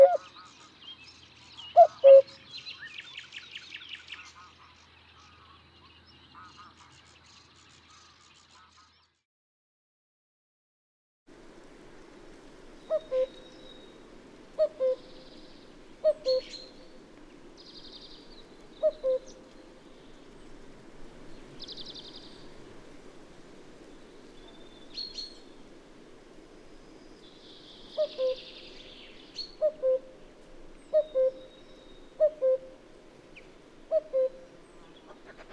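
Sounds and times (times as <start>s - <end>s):
cuckoo calling: 0.0s - 0.4s, 1.6s - 2.4s, 12.8s - 20.6s, 27.0s - 35.5s
songbird chirps: 0.0s - 9.2s, 11.4s - 35.5s.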